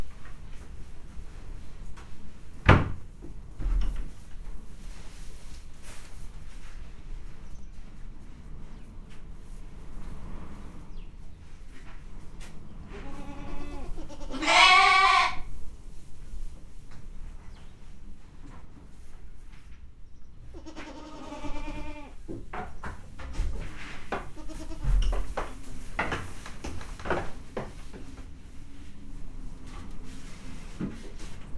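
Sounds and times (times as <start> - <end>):
puszta wind in Hortobágy National Park: 0.0 - 31.5
domestic goat in Hortobágy National Park: 12.9 - 15.5, 23.4 - 25.5.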